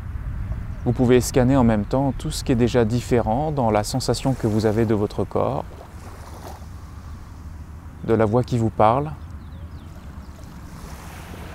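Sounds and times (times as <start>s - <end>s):
speech: 0.8s - 5.8s, 8.1s - 9.2s
continuous rushing water like waves washing in: 2.8s - 8.0s, 9.8s - 11.5s.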